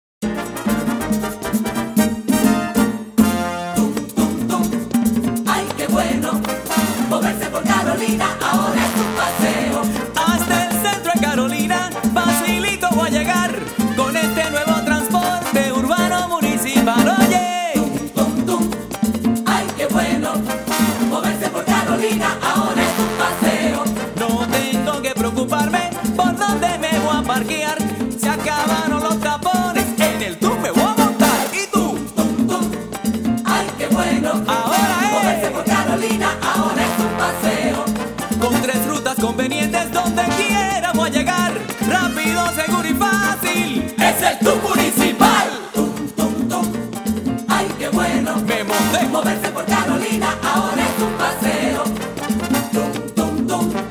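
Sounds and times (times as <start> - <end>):
jingle: 0.2 - 53.9.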